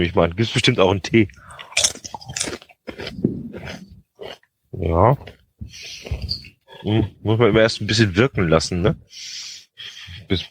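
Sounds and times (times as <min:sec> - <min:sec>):
speech: 0:00.0 - 0:01.9, 0:04.8 - 0:09.4, 0:10.3 - 0:10.4
crunchy rosemary snack bitten and chewed: 0:01.4 - 0:06.3.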